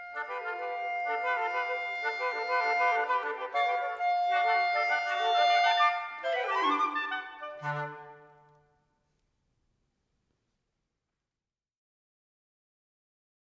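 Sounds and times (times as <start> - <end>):
woodwind trio playing an allegro: 0.0 - 8.6.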